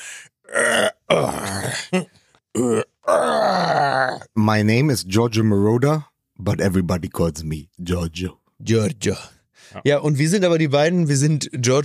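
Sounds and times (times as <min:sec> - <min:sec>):
old men groaning and moaning: 0:00.5 - 0:04.3
speech: 0:04.5 - 0:11.8.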